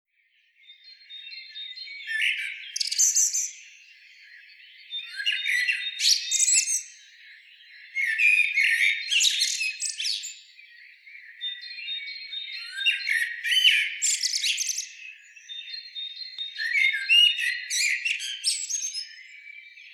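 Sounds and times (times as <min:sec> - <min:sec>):
common blackbird Turdus merula singing: 0:00.4 - 0:19.9.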